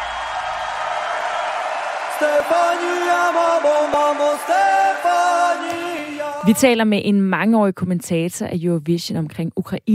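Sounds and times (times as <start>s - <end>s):
standing ovation applause from audience: 0.0s - 6.5s
speech: 2.2s - 9.9s.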